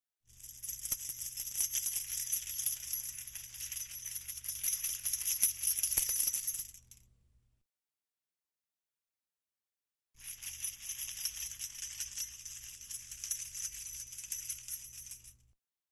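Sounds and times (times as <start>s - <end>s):
binaural jangling keys: 0.4s - 7.0s, 10.2s - 15.3s.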